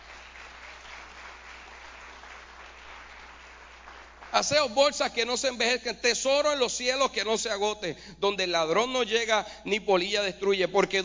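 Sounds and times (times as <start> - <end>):
audience applause: 0.0 - 4.6
speech: 4.3 - 11.0.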